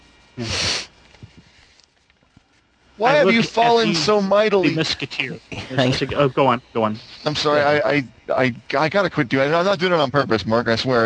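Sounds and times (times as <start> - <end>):
speech: 0.4 - 0.6, 3.0 - 11.0
person sniffing: 0.4 - 1.0.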